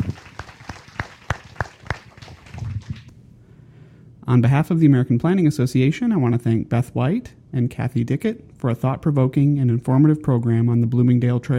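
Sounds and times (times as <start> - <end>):
audience applause: 0.0 - 3.1
speech: 4.3 - 11.5.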